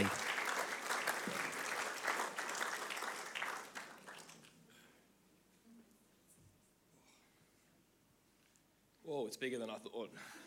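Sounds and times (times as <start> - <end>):
church congregation applauding at an Easter Sunday service: 0.0 - 4.6
speech: 9.3 - 10.4.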